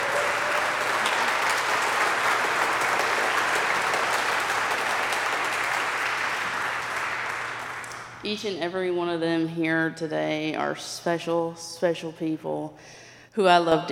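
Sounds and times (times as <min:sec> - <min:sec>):
audience applause: 0:00.0 - 0:08.2
speech: 0:08.3 - 0:13.9.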